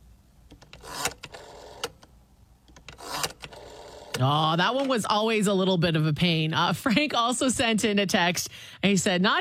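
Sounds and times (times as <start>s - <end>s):
rotary phone dialing: 0.6s - 2.0s, 2.7s - 4.2s
speech: 4.2s - 9.3s.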